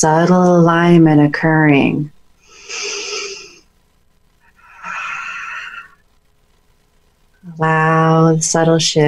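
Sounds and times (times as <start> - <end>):
speech: 0.0 - 2.9, 7.5 - 9.0
deep breaths during a guided meditation: 2.4 - 3.7, 4.5 - 6.0.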